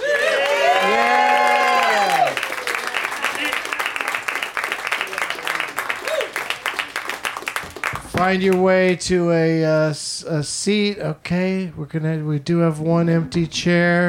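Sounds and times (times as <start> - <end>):
audience applause and cheering: 0.0 - 8.3
speech: 8.2 - 14.0.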